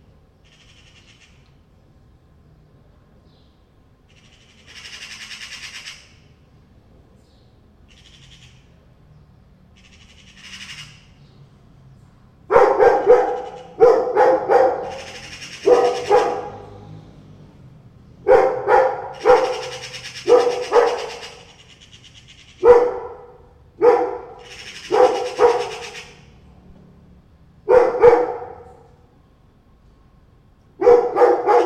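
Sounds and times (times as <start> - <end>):
dry rattling bird chatter: 0.4 - 1.5, 4.1 - 6.3, 7.9 - 8.7, 9.8 - 11.4, 13.0 - 13.8, 14.7 - 16.5, 19.1 - 23.0, 24.3 - 26.3
dog barking: 12.5 - 16.8, 18.2 - 21.5, 22.6 - 26.0, 27.6 - 29.0, 30.8 - 31.6.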